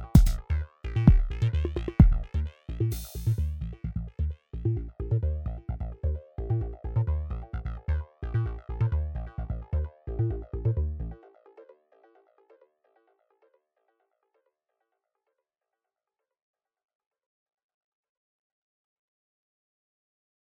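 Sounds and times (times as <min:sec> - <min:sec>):
MinimalBrute synthesizer at max: 0:00.0 - 0:13.6.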